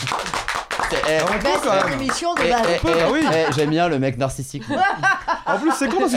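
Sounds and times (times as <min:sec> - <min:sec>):
hands clapping: 0:00.0 - 0:03.8
speech: 0:01.0 - 0:06.1
laughter: 0:02.6 - 0:04.0, 0:04.6 - 0:06.1.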